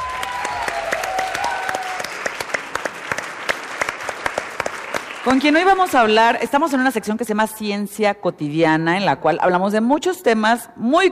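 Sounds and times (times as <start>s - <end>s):
audience applause: 0.0s - 5.9s
speech: 5.2s - 11.1s.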